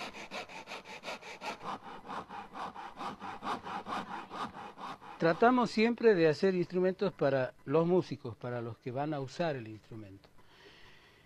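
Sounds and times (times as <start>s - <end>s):
small hand saw cutting a calabash gourd in half: 0.0s - 5.8s
speech: 5.2s - 10.3s.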